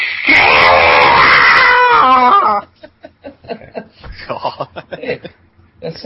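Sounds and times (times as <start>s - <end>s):
person imitating an eagle's cry: 0.0s - 2.6s
laughter: 2.5s - 5.4s.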